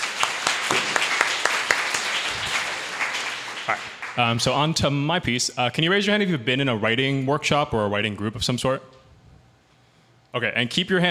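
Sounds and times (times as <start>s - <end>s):
audience round of applause: 0.0s - 4.5s
speech: 3.7s - 9.0s, 10.3s - 11.0s.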